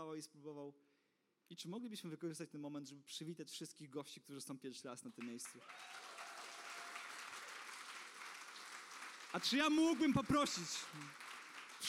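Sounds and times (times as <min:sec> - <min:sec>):
speech: 0:00.0 - 0:00.9, 0:01.5 - 0:06.2, 0:09.3 - 0:11.8
people clapping for guests: 0:05.1 - 0:11.8.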